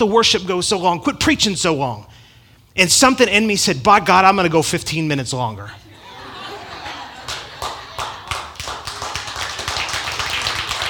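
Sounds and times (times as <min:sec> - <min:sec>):
speech: 0:00.0 - 0:02.2, 0:02.8 - 0:05.8
laughter: 0:05.9 - 0:08.6
audience clapping: 0:07.1 - 0:10.8.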